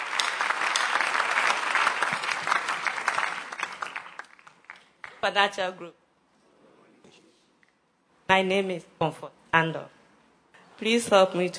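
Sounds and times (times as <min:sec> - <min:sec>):
audience hand clapping: 0:00.0 - 0:05.4
speech: 0:05.2 - 0:06.0, 0:08.3 - 0:10.0, 0:10.8 - 0:11.5.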